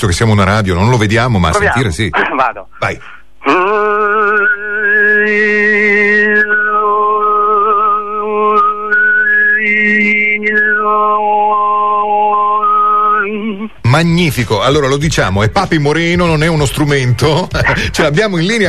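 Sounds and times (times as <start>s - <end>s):
speech: 0.0s - 7.0s, 13.9s - 18.6s
overtone singing: 3.4s - 13.8s.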